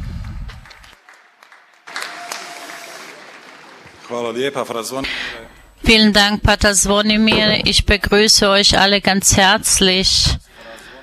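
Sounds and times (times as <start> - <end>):
audience applause: 0.4 - 4.8
speech: 4.1 - 10.4.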